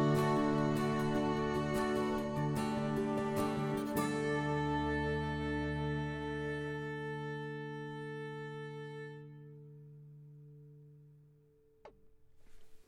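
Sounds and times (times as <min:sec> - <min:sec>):
piano piece: 0:00.0 - 0:08.4.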